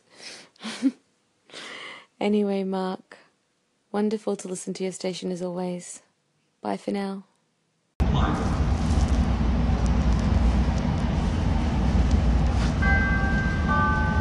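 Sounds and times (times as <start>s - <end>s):
speech: 2.2s - 3.1s, 3.9s - 7.3s
subway train rumbling: 8.0s - 14.1s.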